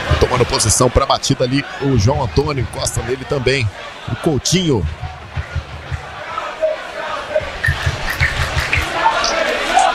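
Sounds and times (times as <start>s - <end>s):
Caldense stadium crowd cheering the team: 0.0s - 9.9s
speech: 0.4s - 5.0s.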